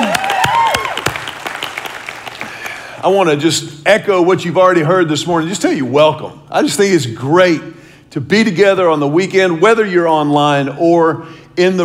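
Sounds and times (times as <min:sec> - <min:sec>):
audience applauding: 0:00.0 - 0:02.9
speech: 0:03.0 - 0:11.8.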